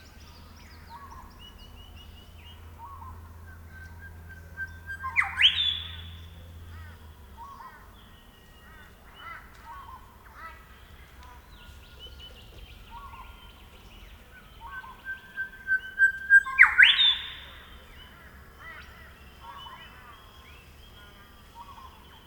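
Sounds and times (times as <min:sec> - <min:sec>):
Grey Shrikethrush Colluricincla Harmonica calling: 0:02.8 - 0:06.2, 0:06.8 - 0:22.2.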